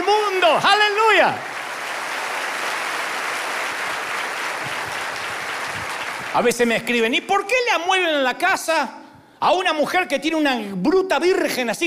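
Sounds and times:
crowd clapping: 0.0 - 7.0
speech: 0.5 - 1.5, 6.3 - 11.8.

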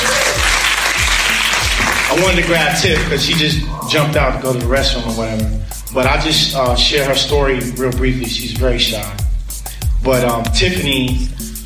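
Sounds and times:
audience applause: 0.0 - 3.4
speech: 2.1 - 9.3, 10.0 - 11.4.

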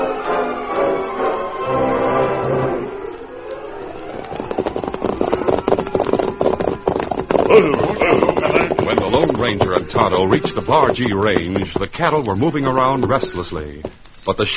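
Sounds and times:
galloping horse hoofbeats sound effect in a western radio drama: 0.1 - 14.5
speech: 10.0 - 14.5.

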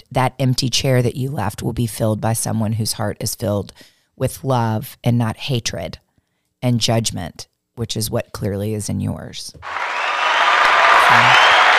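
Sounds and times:
speech: 0.1 - 6.0, 6.6 - 10.2, 11.1 - 11.5
applause clapping: 9.6 - 11.7.

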